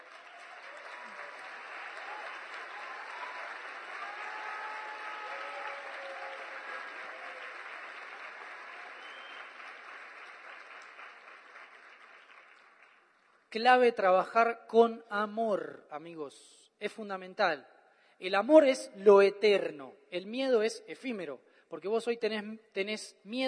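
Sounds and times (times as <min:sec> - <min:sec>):
audience applause: 0:00.0 - 0:13.4
speech: 0:13.5 - 0:23.4.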